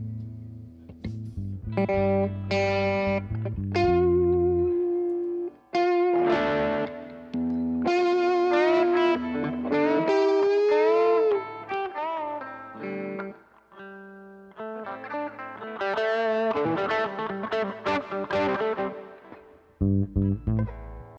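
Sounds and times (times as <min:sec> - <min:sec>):
bass: 0:00.0 - 0:05.1, 0:07.3 - 0:07.9, 0:19.8 - 0:21.1
guitars: 0:00.0 - 0:21.1.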